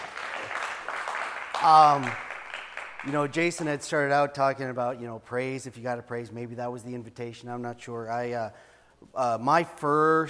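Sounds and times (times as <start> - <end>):
audience clapping: 0.0 - 4.1
speech: 1.6 - 2.2, 3.0 - 10.2.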